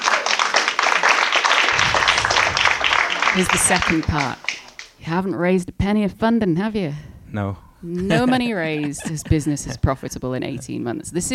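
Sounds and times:
audience applause: 0:00.0 - 0:04.9
speech: 0:03.4 - 0:11.3
laughter: 0:08.0 - 0:11.1.

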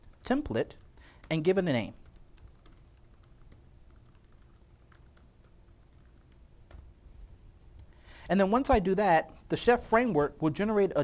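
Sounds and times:
faint typing on a computer keyboard entering a command: 0:00.0 - 0:07.9
steady low hiss: 0:00.0 - 0:11.0
speech: 0:00.3 - 0:02.0, 0:08.3 - 0:11.0.

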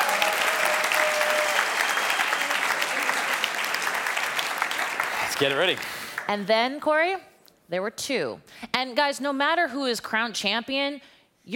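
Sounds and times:
crowd applauding: 0:00.0 - 0:06.4
speech: 0:05.4 - 0:11.5.

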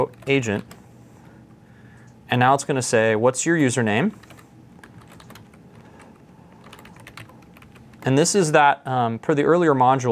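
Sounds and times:
computer keyboard typing a command: 0:00.0 - 0:00.8, 0:04.1 - 0:08.2
speech: 0:00.0 - 0:00.8, 0:02.3 - 0:04.3, 0:08.0 - 0:10.1.

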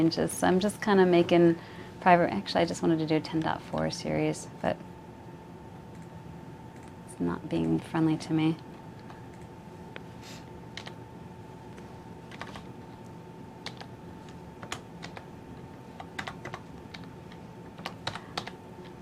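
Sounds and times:
speech: 0:00.0 - 0:04.9, 0:07.2 - 0:08.7
computer keyboard typing: 0:10.8 - 0:11.0, 0:12.3 - 0:12.7, 0:13.6 - 0:15.3, 0:16.0 - 0:18.9.

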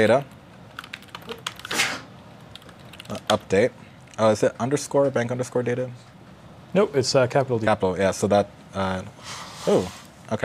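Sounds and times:
speech: 0:00.0 - 0:00.4, 0:03.1 - 0:06.1, 0:06.7 - 0:10.4
computer keyboard typing: 0:00.1 - 0:01.8, 0:02.4 - 0:03.5.

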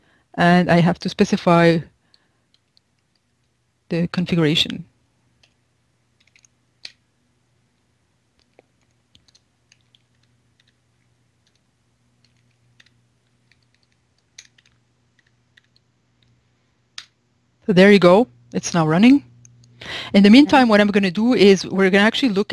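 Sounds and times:
speech: 0:00.4 - 0:01.9, 0:03.9 - 0:04.9, 0:17.7 - 0:22.5
computer keyboard typing as a command is entered: 0:06.2 - 0:07.0, 0:08.4 - 0:16.4.

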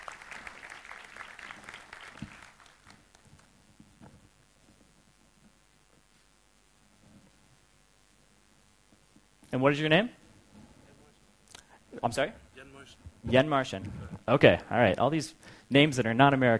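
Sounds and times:
audience clapping: 0:00.0 - 0:03.6
speech: 0:09.6 - 0:10.2, 0:12.1 - 0:16.5.

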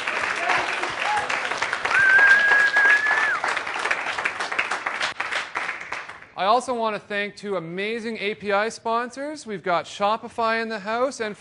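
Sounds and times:
audience applause: 0:00.0 - 0:06.3
speech: 0:06.4 - 0:11.4.

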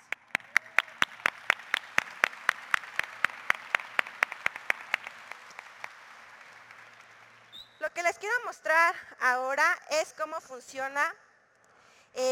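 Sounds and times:
audience applause: 0:00.0 - 0:07.5
speech: 0:08.0 - 0:11.2.

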